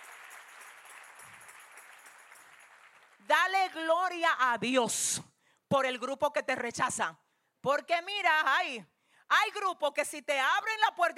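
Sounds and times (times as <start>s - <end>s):
audience applause: 0.0s - 3.3s
speech: 3.3s - 11.1s.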